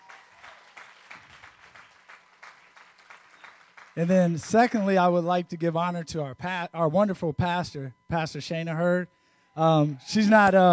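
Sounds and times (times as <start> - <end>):
audience clapping in rhythm: 0.0 - 5.0
speech: 4.0 - 10.7.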